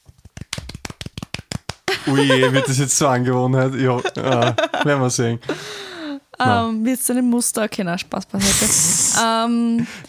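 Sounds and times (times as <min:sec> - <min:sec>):
hand claps: 0:00.0 - 0:02.2, 0:03.5 - 0:04.4
laughter: 0:01.9 - 0:05.7, 0:06.4 - 0:06.7
speech: 0:02.0 - 0:10.0.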